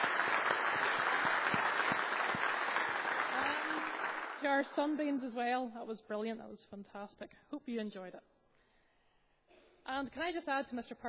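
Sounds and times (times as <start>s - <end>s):
audience clapping: 0.0s - 5.3s
speech: 4.4s - 8.3s, 9.9s - 11.0s.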